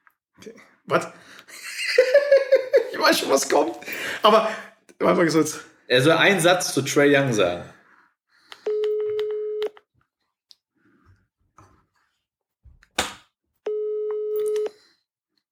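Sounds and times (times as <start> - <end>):
speech: 0.4 - 2.2, 3.0 - 7.8
laughter: 1.5 - 3.1
outgoing phone call ringback tone: 8.6 - 9.8, 13.7 - 14.8.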